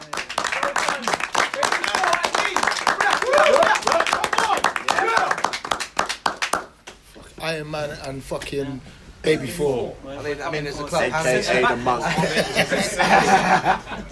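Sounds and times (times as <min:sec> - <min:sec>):
crowd clapping: 0:00.0 - 0:07.0
speech: 0:07.5 - 0:14.0
laughter: 0:11.8 - 0:14.0.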